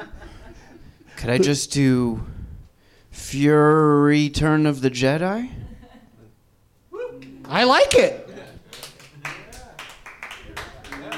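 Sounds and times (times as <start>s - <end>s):
speech: 1.2s - 2.4s, 3.2s - 5.6s, 7.5s - 8.2s
light golf claps from audience: 7.2s - 11.1s.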